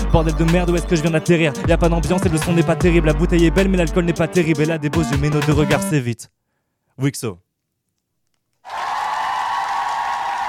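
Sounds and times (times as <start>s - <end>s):
speech: 0.1s - 6.4s, 7.0s - 7.4s
audience applause after a rap performance: 8.6s - 10.4s.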